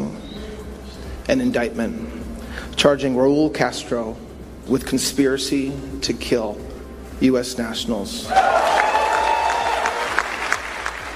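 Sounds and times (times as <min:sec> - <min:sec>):
speech: 0:01.3 - 0:02.2, 0:02.8 - 0:08.6
crowd applauding: 0:08.3 - 0:11.1.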